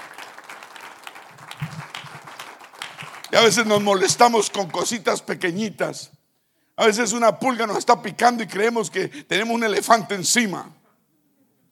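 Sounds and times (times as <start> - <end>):
audience applauding: 0.0 - 5.1
speech: 3.3 - 6.2, 6.8 - 10.8.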